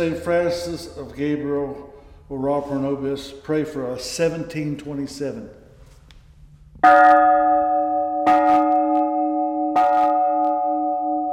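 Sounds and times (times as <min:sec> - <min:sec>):
speech: 0:00.0 - 0:05.6, 0:06.8 - 0:07.6
large antique church bell struck: 0:06.8 - 0:11.3.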